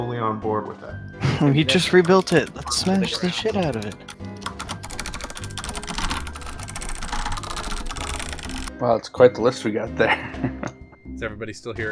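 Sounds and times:
speech: 0.0 - 4.3, 8.8 - 11.9
rapid typing on a computer keyboard entering notes into Roll20: 1.7 - 8.7.

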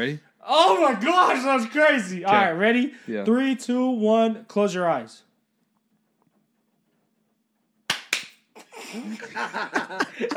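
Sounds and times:
speech: 0.0 - 5.3, 8.9 - 10.3
hand clapping: 7.9 - 8.6
laughter: 8.6 - 10.3.

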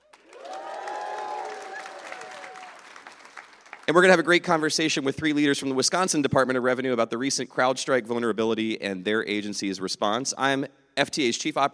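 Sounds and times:
cheering: 0.0 - 4.0
live audience applause at the 2024 FTA Technology Conference: 0.0 - 4.2
speech: 3.9 - 11.7.

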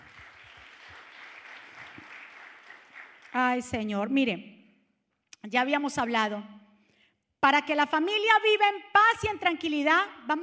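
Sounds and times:
audience applauding: 0.0 - 3.4
speech: 3.4 - 4.5, 5.4 - 6.6, 7.4 - 10.4.

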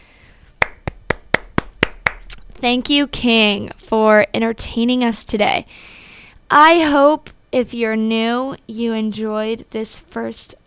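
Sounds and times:
hand claps: 0.6 - 2.4
speech: 2.6 - 10.6.

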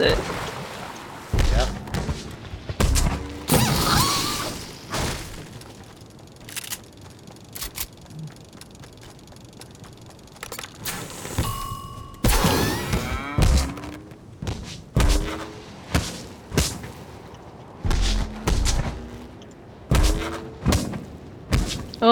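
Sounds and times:
video game loot llama sound effects: 1.2 - 5.9, 10.8 - 22.1.

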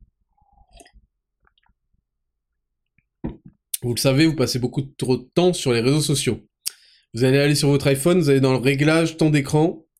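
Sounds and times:
person sipping a drink: 0.4 - 1.7
speech: 3.8 - 6.5, 7.1 - 9.8.

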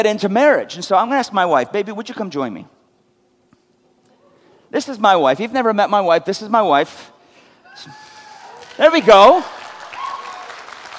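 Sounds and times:
speech: 0.0 - 2.8, 4.7 - 7.2, 7.8 - 8.0, 8.8 - 9.6
audience applause: 8.3 - 10.9.

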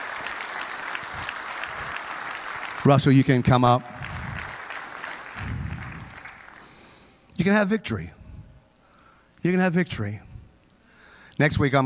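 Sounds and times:
audience applause: 0.0 - 7.1
speech: 2.8 - 3.9, 7.4 - 8.2, 9.4 - 10.3, 11.4 - 11.8.

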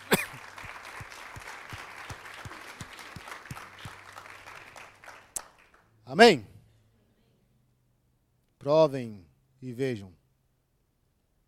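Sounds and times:
audience applauding: 0.0 - 5.9
speech: 6.1 - 6.5, 8.7 - 10.2.

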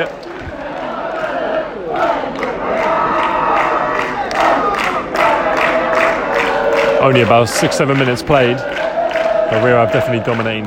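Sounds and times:
speech: 0.0 - 0.2, 7.0 - 8.9, 9.5 - 10.6
football fans roaring in a stadium: 0.0 - 10.6.

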